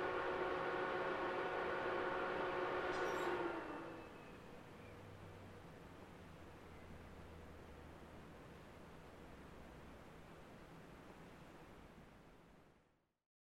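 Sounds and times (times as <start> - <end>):
distant PC operating noise switching on and off: 0.0 - 4.1.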